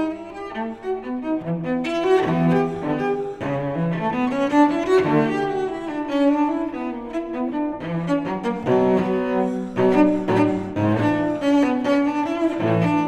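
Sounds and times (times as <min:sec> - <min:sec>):
solo cello suite: 0:00.0 - 0:13.0.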